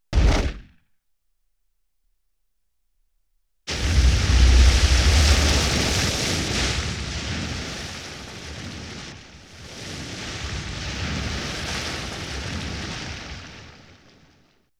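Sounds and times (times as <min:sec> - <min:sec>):
explosion: 0:03.7 - 0:08.8.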